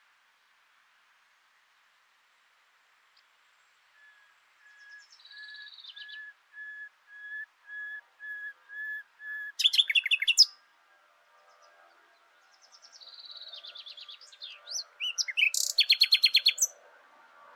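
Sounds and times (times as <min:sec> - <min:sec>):
Luscinia megarhynchos singing: 0:03.9 - 0:10.7, 0:12.5 - 0:16.8.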